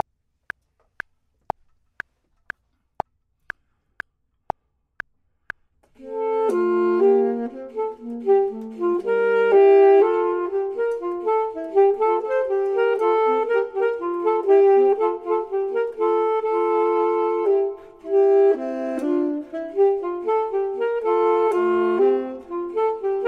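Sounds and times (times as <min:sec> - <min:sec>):
clarinet: 0:06.0 - 0:23.2
saxophone: 0:06.0 - 0:23.2.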